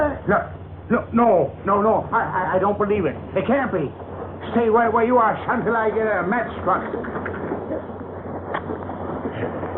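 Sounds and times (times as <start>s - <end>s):
speech: 0.2s - 7.9s
lightning strike: 0.9s - 9.7s
thunder: 3.0s - 9.7s.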